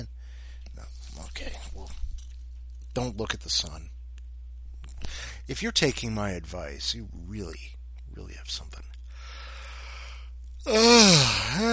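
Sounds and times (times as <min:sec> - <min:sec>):
speech: 0:03.0 - 0:04.0, 0:05.0 - 0:08.9, 0:10.6 - 0:11.7
person yawning: 0:10.6 - 0:11.7.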